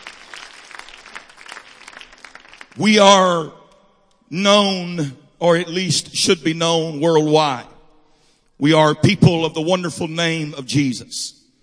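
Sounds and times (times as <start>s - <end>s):
audience applause: 0.0s - 2.8s
speech: 2.8s - 3.6s, 4.3s - 7.7s, 8.6s - 11.4s.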